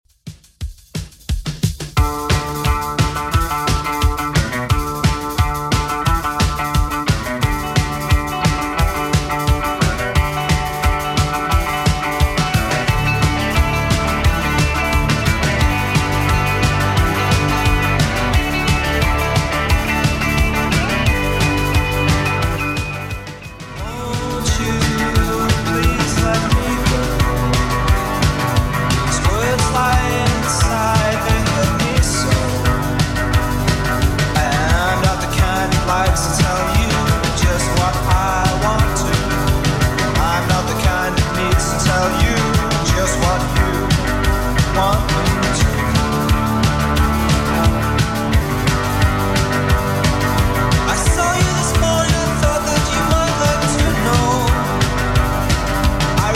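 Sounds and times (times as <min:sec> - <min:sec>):
80s style drum beat at 176 bpm: 0:00.0 - 0:56.3.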